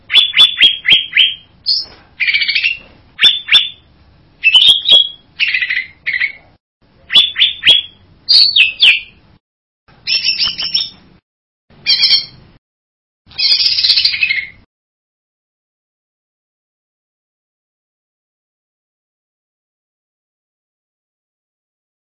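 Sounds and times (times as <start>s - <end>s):
bird buzzy whistled song: 0.1s - 9.2s, 10.0s - 11.0s, 11.8s - 12.4s, 13.3s - 14.7s.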